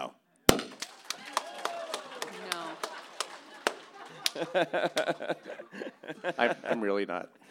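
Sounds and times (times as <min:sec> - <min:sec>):
scattered applause: 0:00.7 - 0:06.0
laughter: 0:01.1 - 0:07.4
speech: 0:04.4 - 0:07.4.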